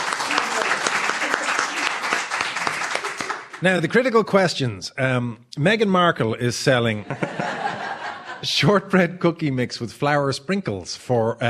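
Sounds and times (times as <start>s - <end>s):
audience applause: 0.0s - 3.9s
laughter: 0.2s - 2.0s, 6.9s - 8.8s
speech: 3.6s - 7.5s, 8.4s - 11.4s.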